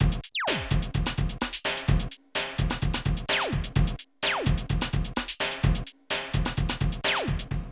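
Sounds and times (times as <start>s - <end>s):
rave and hardcore drum loops: 0.0s - 7.6s.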